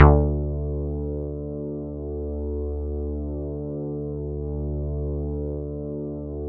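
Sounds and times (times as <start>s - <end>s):
bass: 0.0s - 6.4s
synthesizers: 0.0s - 6.4s.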